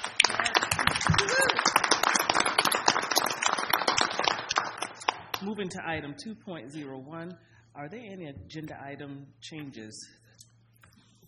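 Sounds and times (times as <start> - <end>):
people applauding: 0.0 - 5.6
speech: 5.4 - 10.2.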